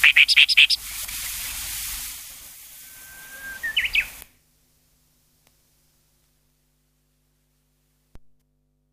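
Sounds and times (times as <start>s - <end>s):
Oriental reed warbler singing croaking rattling runs: 0.0s - 0.8s, 3.0s - 4.2s.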